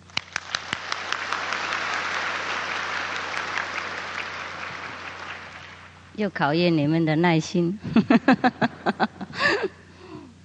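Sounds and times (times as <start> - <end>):
warm audience applause: 0.0 - 6.0
laughter: 1.0 - 5.8, 7.8 - 9.8
speech: 6.2 - 9.8.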